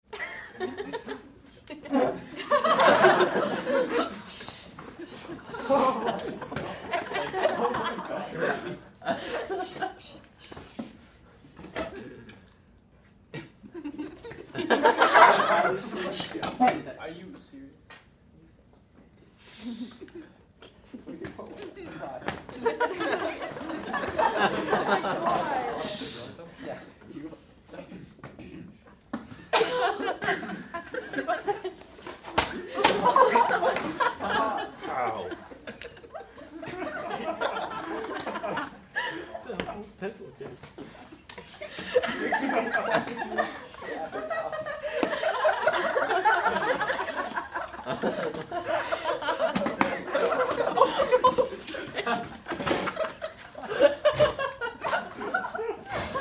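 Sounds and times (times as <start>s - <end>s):
high school class crowd clowning around and laughing: 0.1s - 10.2s, 13.4s - 16.2s, 21.0s - 26.3s, 29.3s - 39.8s, 40.8s - 56.1s.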